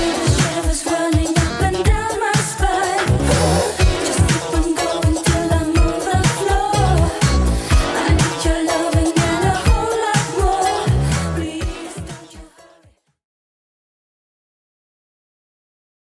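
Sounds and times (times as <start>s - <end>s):
80s style beat at 123 bpm: 0.0s - 12.6s.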